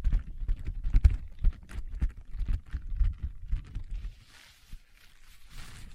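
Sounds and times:
leather tapping and scratching: 0.0 - 4.4.

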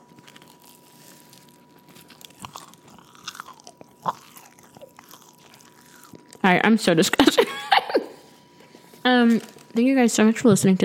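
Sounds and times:
chewing a chicken sandwich: 0.0 - 6.5
speech: 6.5 - 7.5, 9.3 - 10.8.

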